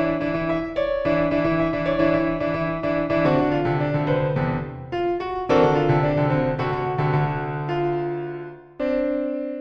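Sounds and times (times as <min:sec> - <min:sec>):
piano prelude: 0:00.0 - 0:09.6.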